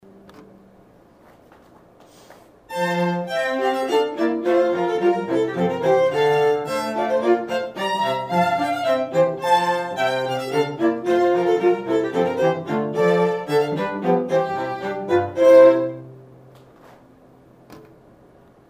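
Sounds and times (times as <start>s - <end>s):
trio playing music: 2.7s - 16.3s.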